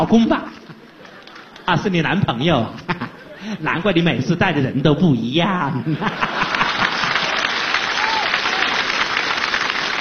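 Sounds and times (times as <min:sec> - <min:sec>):
speech: 0:00.0 - 0:00.6, 0:01.7 - 0:06.4
laughter: 0:00.5 - 0:03.8, 0:05.7 - 0:09.9
audience applause: 0:00.8 - 0:01.7, 0:06.1 - 0:09.9.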